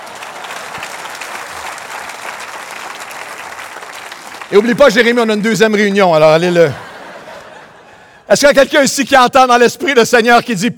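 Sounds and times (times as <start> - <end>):
audience applause: 0.0 - 5.8
speech: 4.5 - 6.8, 8.3 - 10.7
laughter: 6.4 - 8.3.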